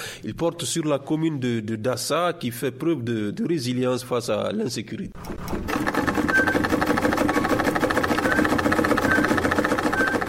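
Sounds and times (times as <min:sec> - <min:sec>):
speech: 0:00.2 - 0:05.8
sewing machine running in a tailoring workshop: 0:05.2 - 0:10.2.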